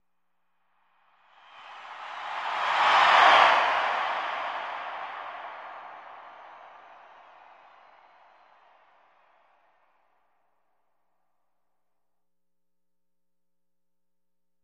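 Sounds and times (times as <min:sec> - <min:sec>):
arena crowd huge cheer with doppler by and long decay: 0:01.8 - 0:09.2.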